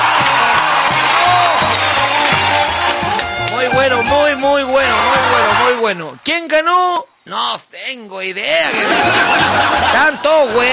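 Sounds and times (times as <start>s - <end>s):
audience applause and cheering: 0.0s - 5.9s
speech: 3.8s - 10.7s
laughter: 8.6s - 10.7s.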